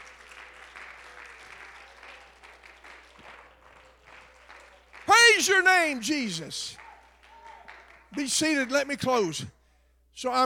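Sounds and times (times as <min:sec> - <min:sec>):
audience clapping hands: 0:00.0 - 0:09.3
speech: 0:05.4 - 0:06.8, 0:08.2 - 0:09.6, 0:10.2 - 0:10.4.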